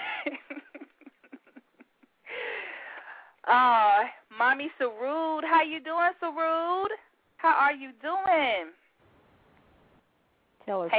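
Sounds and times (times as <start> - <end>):
person taking quick breathing huffs: 2.2 - 3.4
speech: 3.5 - 8.8, 10.7 - 10.9.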